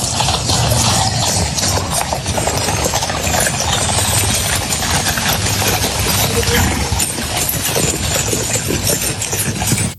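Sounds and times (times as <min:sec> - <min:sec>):
hooves of a horse-drawn carriage clip-clopping: 0:00.0 - 0:09.9.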